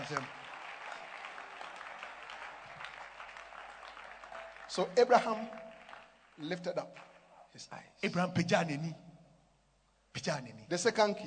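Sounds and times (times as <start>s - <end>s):
audience clapping: 0.0s - 7.5s
speech: 0.1s - 0.4s, 4.7s - 5.6s, 6.4s - 9.1s, 10.2s - 11.2s.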